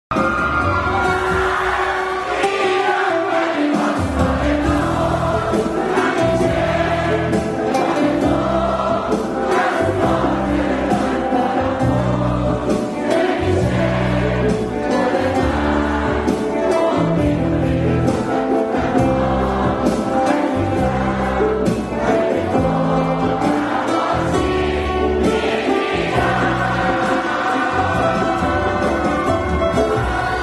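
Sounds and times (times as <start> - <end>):
guitar: 0.1 - 30.4.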